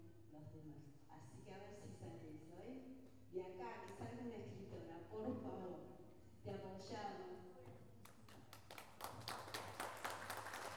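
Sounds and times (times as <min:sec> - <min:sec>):
speech: 0:00.4 - 0:07.8
audience clapping at an intercultural gathering of living languages in Salta: 0:08.1 - 0:10.7.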